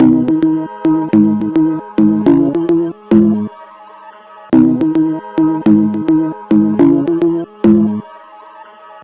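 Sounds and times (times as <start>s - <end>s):
lo-fi bass: 0.0s - 3.5s, 4.6s - 8.0s.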